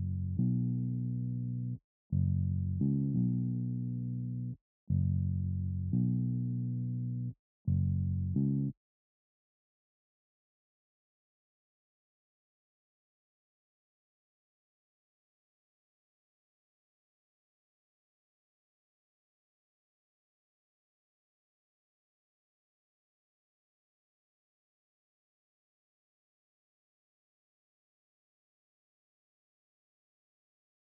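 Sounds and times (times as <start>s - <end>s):
bass melody in F sharp minor: 0.0s - 8.7s.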